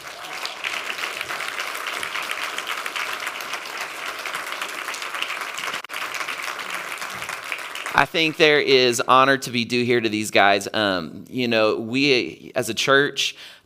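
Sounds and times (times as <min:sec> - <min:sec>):
audience hand clapping: 0:00.0 - 0:08.4
speech: 0:08.0 - 0:13.6.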